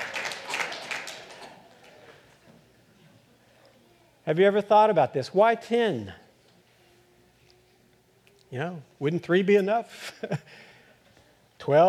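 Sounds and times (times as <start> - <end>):
audience clapping: 0.0 - 1.8
speech: 4.3 - 6.2, 8.5 - 10.7, 11.6 - 11.8.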